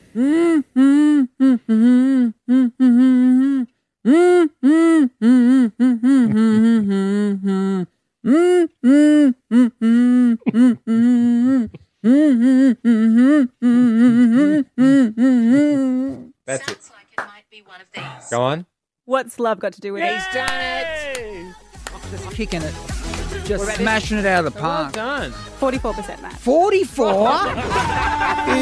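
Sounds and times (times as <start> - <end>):
person humming a song tune: 0.0 - 16.3
speech: 0.2 - 1.0, 19.3 - 21.0, 22.1 - 28.6
laughter: 6.2 - 7.0, 26.8 - 28.6.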